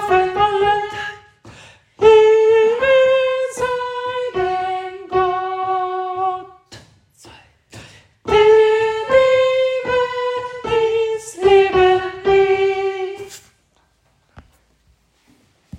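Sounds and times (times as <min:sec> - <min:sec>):
alto voice singing: 0:00.0 - 0:01.3, 0:02.0 - 0:06.8, 0:08.3 - 0:13.5.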